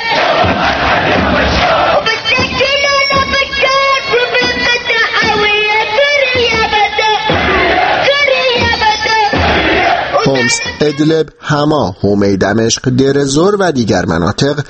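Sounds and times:
protest crowd chanting: 0:00.0 - 0:11.0
speech: 0:10.8 - 0:14.6.

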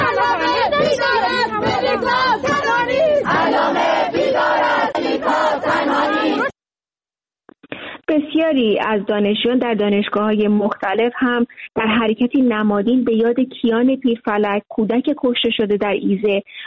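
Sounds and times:
students chanting protest slogans at university: 0:00.0 - 0:06.5
speech: 0:08.4 - 0:16.6.

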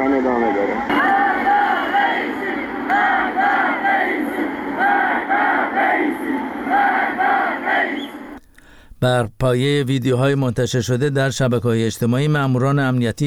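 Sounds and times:
protesters chanting slogans against government leaders: 0:00.9 - 0:08.4
speech: 0:09.0 - 0:13.2.

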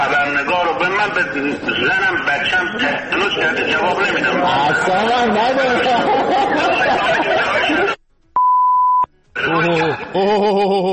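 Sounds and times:
laughter: 0:00.8 - 0:08.0, 0:09.4 - 0:10.9
speech: 0:00.8 - 0:08.0, 0:09.4 - 0:10.9
mid-pitched censor beep: 0:08.4 - 0:09.1.

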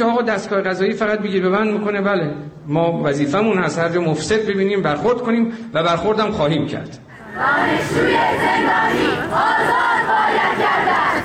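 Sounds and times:
speech: 0:00.0 - 0:11.2
university students chanting protest slogans at a Student Day event: 0:07.1 - 0:11.2.

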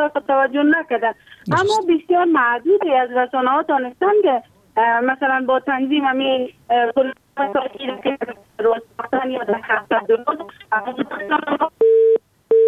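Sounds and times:
speech: 0:00.0 - 0:12.1
phone line beeps after a dropped call: 0:11.8 - 0:12.6.

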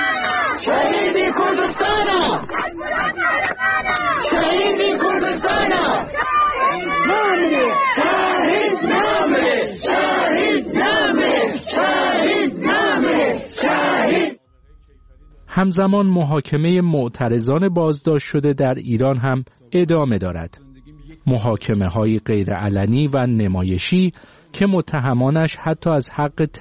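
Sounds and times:
crowd chanting anti-government slogans: 0:00.0 - 0:14.5
speech: 0:15.6 - 0:20.6, 0:21.2 - 0:26.5.

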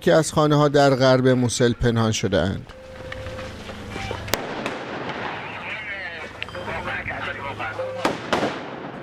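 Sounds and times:
speech: 0:00.0 - 0:02.8
faint voices murmuring: 0:02.4 - 0:09.0
exchange of gunfire: 0:04.0 - 0:06.4, 0:08.0 - 0:09.0.

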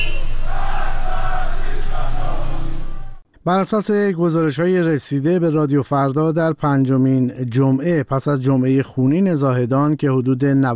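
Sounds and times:
protesters chanting slogans in unison in the street: 0:00.0 - 0:03.1
speech: 0:03.4 - 0:10.7.

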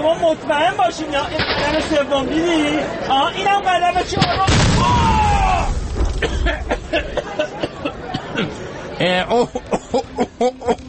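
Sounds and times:
speech: 0:00.1 - 0:05.1, 0:06.2 - 0:07.6, 0:08.4 - 0:10.8
explosion: 0:04.4 - 0:06.7
laughter: 0:06.1 - 0:10.8.

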